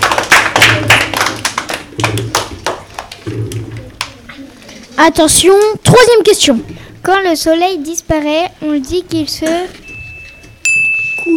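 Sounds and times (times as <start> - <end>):
audience applause: 0.0 - 3.2
speech: 5.0 - 9.8.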